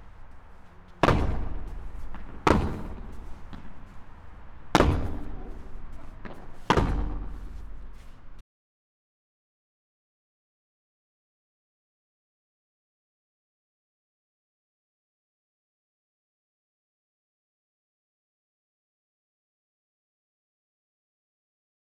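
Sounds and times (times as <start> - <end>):
padel ball hitting plexiglass: 0.8 - 8.2.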